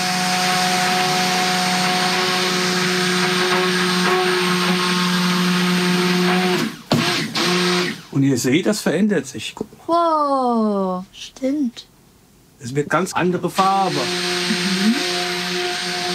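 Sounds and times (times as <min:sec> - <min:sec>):
motorized mixer whirring while mixing oils and caustic lye in a mixing bowl: 0:00.0 - 0:08.2, 0:13.4 - 0:16.1
speech: 0:08.4 - 0:11.9, 0:12.6 - 0:15.1.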